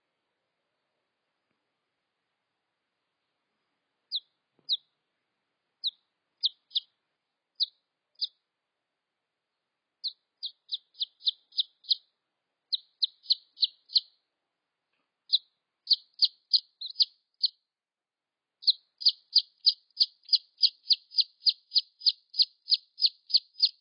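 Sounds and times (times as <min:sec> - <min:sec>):
red junglefowl chicks peeping: 0:04.1 - 0:04.9, 0:05.8 - 0:06.9, 0:07.6 - 0:08.4, 0:10.0 - 0:12.0, 0:12.7 - 0:14.1, 0:15.3 - 0:17.6, 0:18.6 - 0:23.8.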